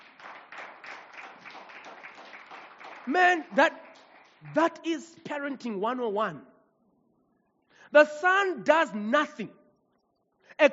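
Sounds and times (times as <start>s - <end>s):
audience applause: 0.0s - 4.8s
speech: 3.1s - 3.8s, 4.4s - 6.5s, 7.9s - 9.6s, 10.6s - 10.7s.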